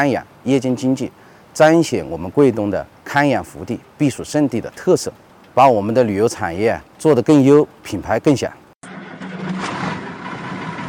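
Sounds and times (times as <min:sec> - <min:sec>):
speech: 0:00.0 - 0:08.6
loaded cargo truck starting to move off: 0:08.8 - 0:10.8.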